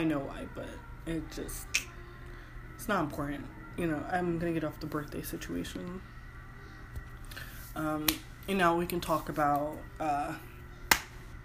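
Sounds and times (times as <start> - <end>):
speech: 0.0 - 1.9, 2.8 - 6.1, 7.4 - 10.5
loud hand clap into the microphone: 10.9 - 11.2.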